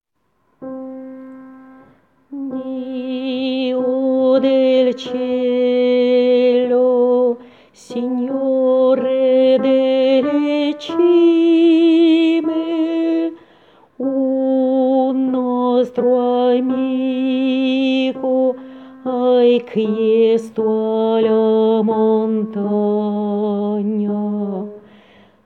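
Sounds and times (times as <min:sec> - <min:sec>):
tenor singing: 0:02.3 - 0:13.4, 0:14.0 - 0:24.8.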